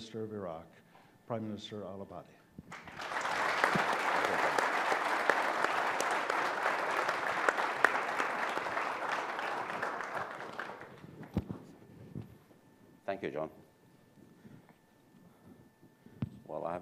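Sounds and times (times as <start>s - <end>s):
speech: 0.1s - 3.0s, 13.2s - 13.6s
large audience applause: 2.7s - 11.4s.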